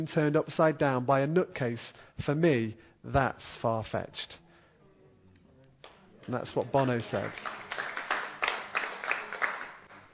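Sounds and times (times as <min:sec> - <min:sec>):
speech: 0:00.0 - 0:04.4, 0:06.3 - 0:07.9
small audience clapping: 0:05.8 - 0:10.1.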